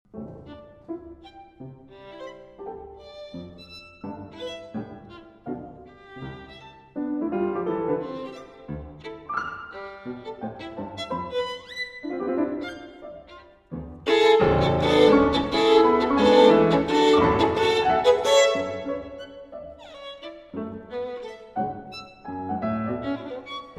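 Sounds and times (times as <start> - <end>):
violin and piano march: 0.1 - 23.7.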